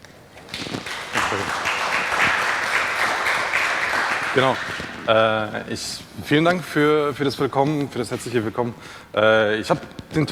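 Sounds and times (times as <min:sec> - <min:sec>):
conference audience applause welcoming a speaker: 0:00.4 - 0:05.1
speech: 0:01.3 - 0:01.6, 0:04.4 - 0:10.3.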